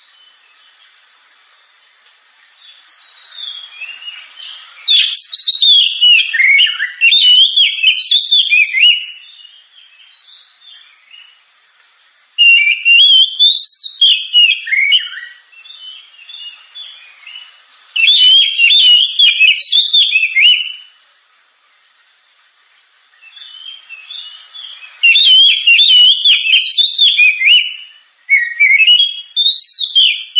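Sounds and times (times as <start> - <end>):
Oriental magpie-robin song: 2.7 - 11.4, 12.4 - 20.9, 23.2 - 30.3.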